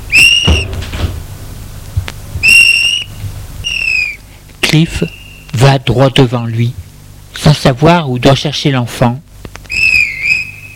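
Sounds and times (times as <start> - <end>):
high squealing whistle-like tone: 0.1 - 0.7, 2.4 - 4.2, 9.7 - 10.7
door closing with thud: 0.3 - 1.2
speech: 4.7 - 6.8, 7.4 - 9.3.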